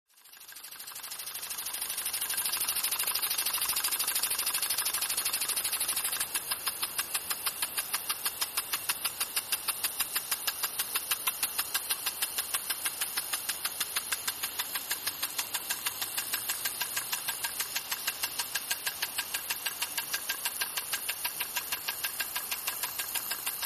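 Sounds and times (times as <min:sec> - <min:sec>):
water sprinkler: 0:00.1 - 0:23.6.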